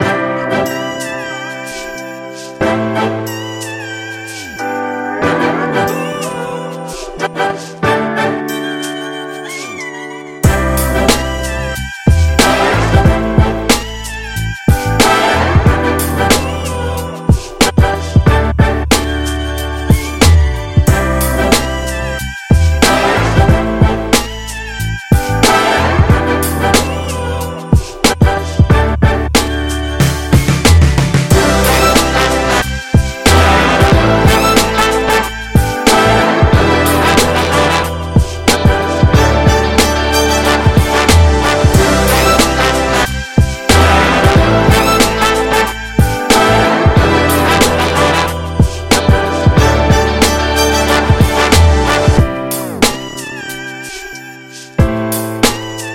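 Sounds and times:
hip hop music: 0.0s - 55.9s.

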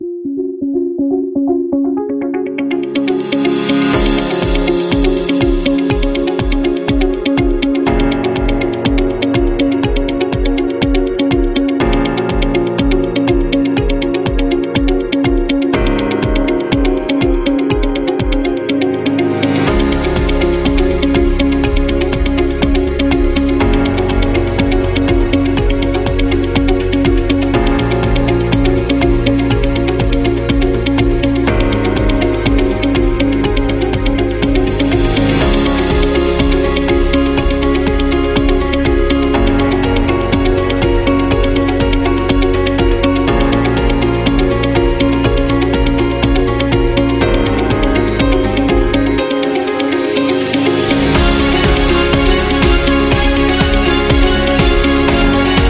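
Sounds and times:
corporate background music: 0.0s - 55.6s.

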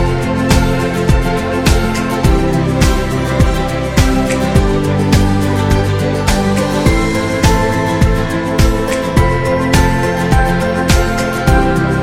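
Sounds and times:
guitar: 0.0s - 12.0s
piano: 0.0s - 12.0s.

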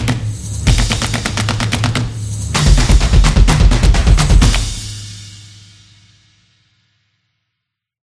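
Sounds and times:
fast street percussion background music for sport, motion and dance: 0.0s - 5.1s.

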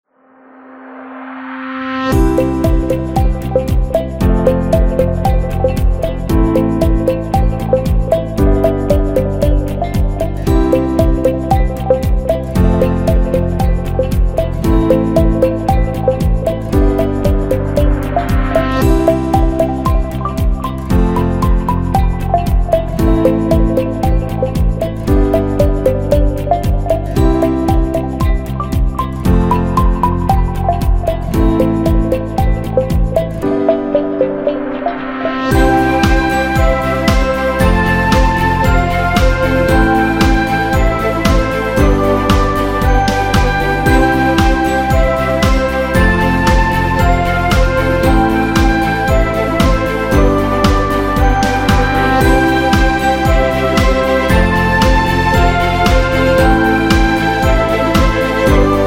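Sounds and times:
uplifting flute music: 2.1s - 58.8s.

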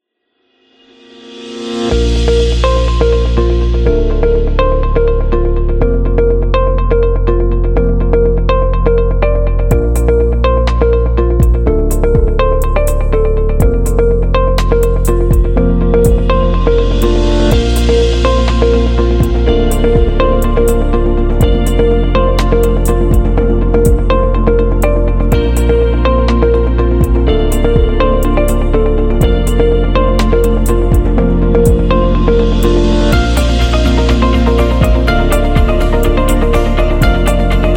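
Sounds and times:
real estate background music: 1.1s - 37.7s.

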